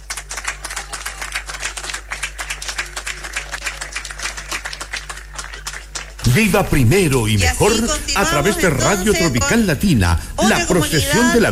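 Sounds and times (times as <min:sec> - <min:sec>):
applause: 0:00.0 - 0:06.4
speech: 0:06.3 - 0:11.5.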